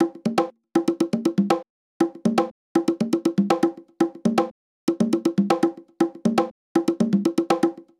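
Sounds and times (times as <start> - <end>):
hard congas in nu jazz house style: 0.0 - 7.9.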